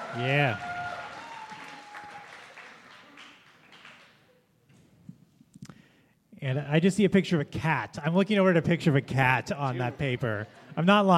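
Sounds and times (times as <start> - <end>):
audience applause at a live event: 0.0 - 4.2
speech: 0.2 - 0.7, 6.4 - 11.1
laughter: 8.6 - 11.1.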